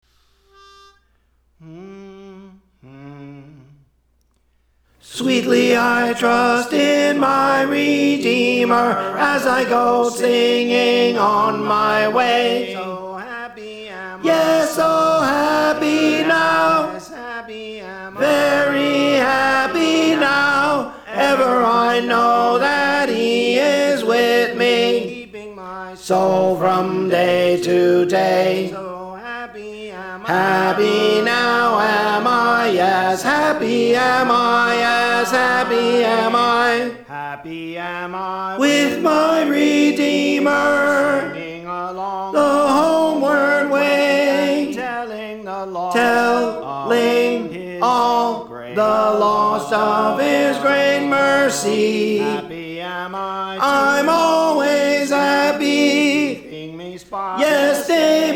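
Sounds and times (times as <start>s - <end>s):
tenor singing: 1.6s - 3.8s, 5.0s - 58.3s.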